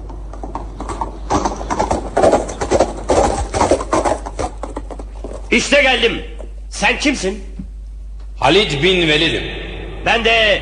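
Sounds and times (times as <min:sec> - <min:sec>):
horse hooves galloping in an audio drama: 0:00.0 - 0:06.7
speech: 0:05.5 - 0:07.5, 0:08.4 - 0:10.6.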